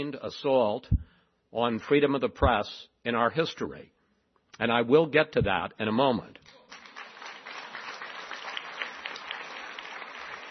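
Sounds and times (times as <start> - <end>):
speech: 0.0 - 4.0, 4.6 - 6.6
audience applause: 6.7 - 10.5.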